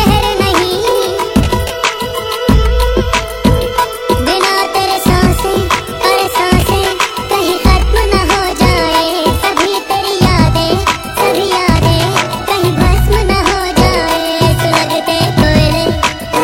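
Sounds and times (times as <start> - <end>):
flute: 0.2 - 16.4.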